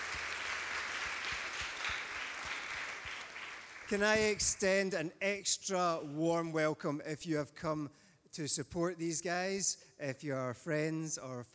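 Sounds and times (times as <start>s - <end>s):
audience cheering: 0.0s - 4.4s
speech: 3.9s - 11.5s.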